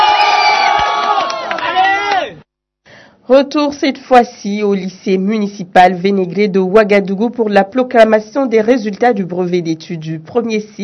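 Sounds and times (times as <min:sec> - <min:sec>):
crowd applauding: 0:00.0 - 0:02.4
speech: 0:03.3 - 0:10.8.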